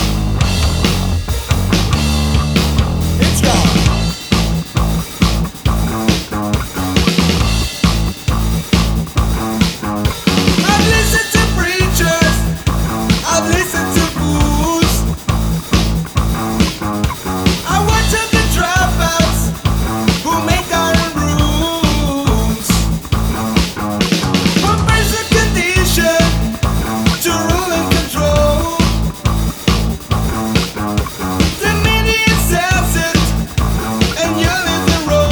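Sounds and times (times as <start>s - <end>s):
rock guitar backing track: 0.0s - 35.2s
person singing: 3.2s - 3.9s, 10.6s - 15.2s, 17.6s - 22.9s, 24.6s - 29.2s, 31.6s - 35.2s.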